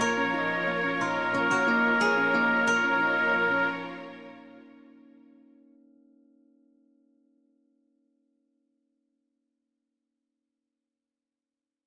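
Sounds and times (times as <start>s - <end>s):
orchestral music: 0.0s - 5.4s.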